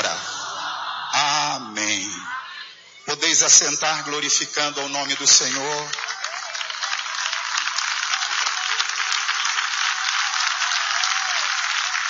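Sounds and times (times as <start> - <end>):
laughter: 0.0 - 7.4
speech: 3.3 - 6.2
clapping: 4.7 - 12.0.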